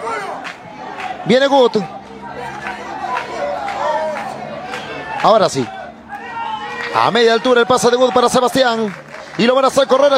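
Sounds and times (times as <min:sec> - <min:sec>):
spectators murmuring at a football match: 0:00.0 - 0:10.1
speech: 0:01.2 - 0:02.0, 0:05.2 - 0:05.8, 0:06.9 - 0:10.1.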